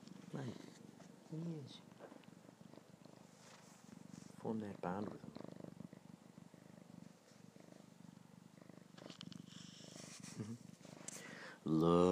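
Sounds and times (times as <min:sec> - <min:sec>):
soft rustling: 0:00.0 - 0:08.0, 0:08.6 - 0:11.4
cat purring: 0:00.0 - 0:12.1
speech: 0:00.3 - 0:02.0, 0:04.4 - 0:05.4, 0:11.7 - 0:12.1.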